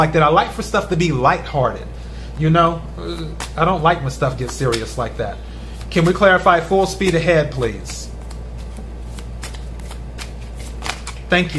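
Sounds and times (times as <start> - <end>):
speech: 0.0 - 8.1, 11.3 - 11.5
tarot cards being shuffled: 3.3 - 3.6, 4.3 - 11.5.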